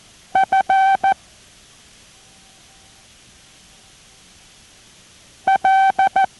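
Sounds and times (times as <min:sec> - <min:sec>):
morse code tones being sent: 0:00.4 - 0:01.2, 0:05.5 - 0:06.3.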